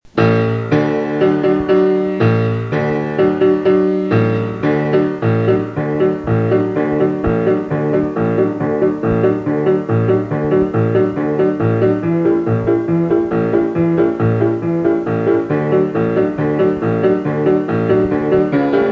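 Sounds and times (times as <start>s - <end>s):
piano: 0.0s - 18.8s.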